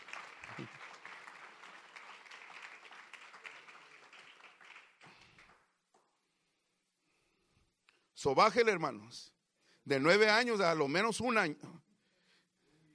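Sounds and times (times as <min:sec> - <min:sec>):
audience applause: 0:00.0 - 0:05.6
speech: 0:00.6 - 0:00.8, 0:08.2 - 0:11.8.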